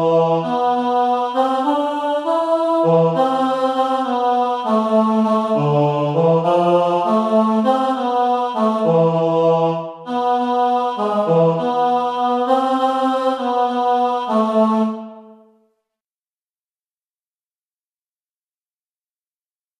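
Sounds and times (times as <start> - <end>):
person singing: 0.0 - 15.3.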